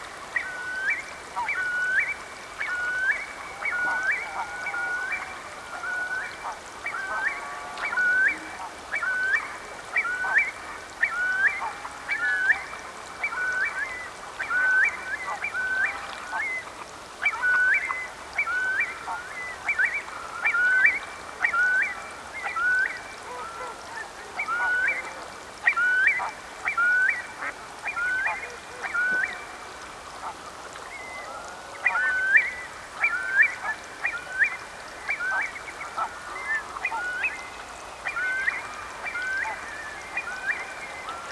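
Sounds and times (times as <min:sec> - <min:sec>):
Eurasian curlew upslurred whistled calls: 0:00.3 - 0:29.6, 0:30.2 - 0:41.3.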